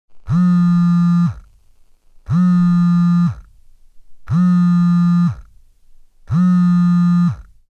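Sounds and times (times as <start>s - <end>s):
phone vibrating rapidly: 0.1s - 1.6s, 2.2s - 3.6s, 4.2s - 5.6s, 6.3s - 7.6s.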